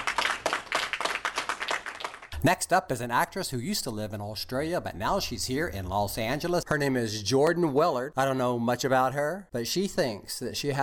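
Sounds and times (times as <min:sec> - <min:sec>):
small group clapping: 0:00.0 - 0:02.4
speech: 0:02.4 - 0:10.8.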